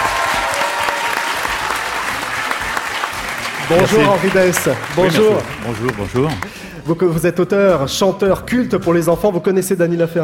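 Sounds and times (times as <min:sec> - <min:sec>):
audience applause: 0:00.0 - 0:06.8
speech: 0:03.7 - 0:10.2.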